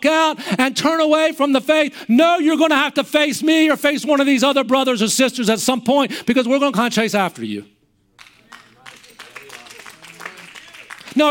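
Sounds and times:
speech: 0.3s - 7.8s
audience applauding: 8.2s - 11.2s.

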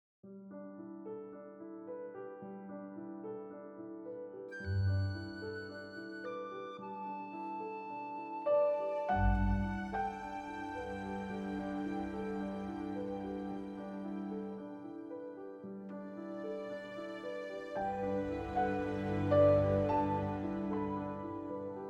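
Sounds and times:
dreamlike romantic comedy music: 4.5s - 21.8s.

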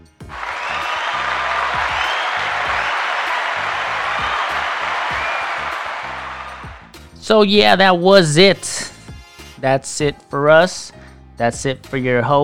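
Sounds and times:
clapping: 0.2s - 6.9s
speech: 7.3s - 8.9s, 9.6s - 12.4s.

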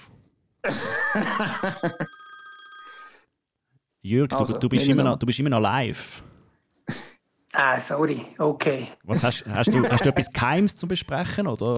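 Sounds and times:
speech: 0.6s - 2.2s, 4.0s - 6.3s, 6.9s - 11.7s
laughter: 0.7s - 2.1s, 9.2s - 10.4s
telephone ringing with bright electronic tone: 0.8s - 3.3s.

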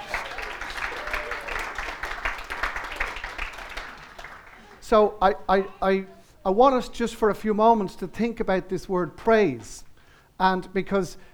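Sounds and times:
crowd applauding: 0.0s - 5.8s
speech: 4.9s - 11.3s.

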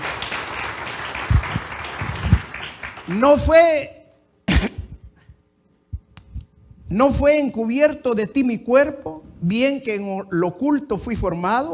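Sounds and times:
audience applause: 0.0s - 3.5s
speech: 3.1s - 4.0s, 6.9s - 11.7s.

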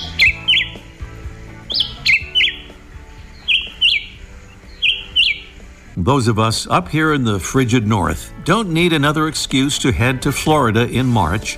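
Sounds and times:
black-whiskered vireo singing: 0.0s - 5.9s
speech: 6.0s - 11.5s.

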